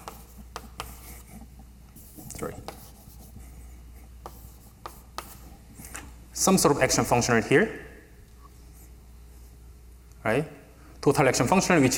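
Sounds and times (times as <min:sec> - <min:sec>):
writing strokes on a board during a physics lecture: 0:00.0 - 0:03.6, 0:04.2 - 0:05.4
speech: 0:02.4 - 0:02.8, 0:06.4 - 0:07.9, 0:10.3 - 0:11.9.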